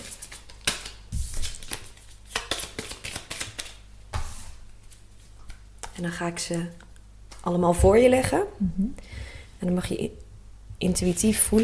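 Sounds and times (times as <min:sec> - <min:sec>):
deck of cards being shuffled: 0:00.0 - 0:05.6
speech: 0:06.0 - 0:06.8, 0:07.4 - 0:10.2, 0:10.8 - 0:11.6.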